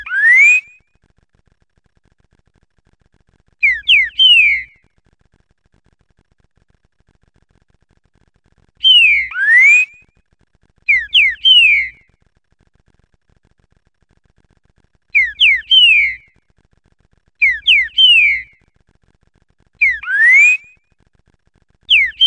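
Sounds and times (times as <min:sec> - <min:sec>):
green-winged saltator song of rich slurred rising and falling whistles: 0:00.0 - 0:00.8, 0:03.6 - 0:04.8, 0:08.8 - 0:10.0, 0:10.9 - 0:12.1, 0:15.1 - 0:16.3, 0:17.4 - 0:18.6, 0:19.8 - 0:20.8, 0:21.9 - 0:22.2.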